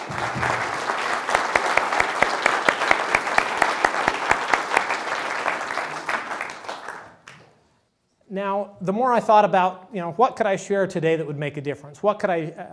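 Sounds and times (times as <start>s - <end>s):
room full of people clapping: 0.0s - 7.7s
speech: 8.4s - 12.7s.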